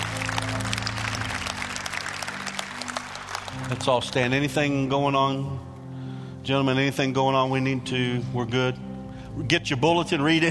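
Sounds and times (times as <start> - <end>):
audience hand clapping: 0.0 - 4.5
speech: 3.7 - 5.7, 6.4 - 10.4.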